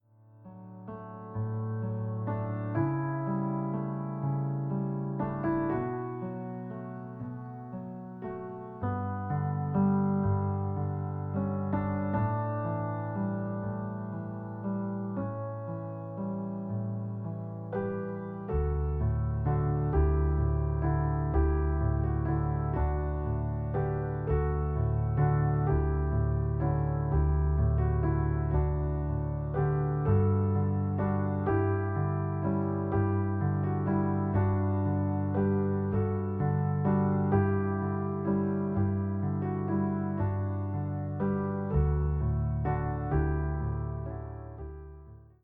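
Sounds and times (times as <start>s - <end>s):
piano: 0.0s - 45.4s.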